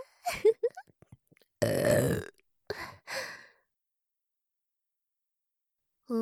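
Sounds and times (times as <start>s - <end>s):
woman burping: 1.6s - 2.4s.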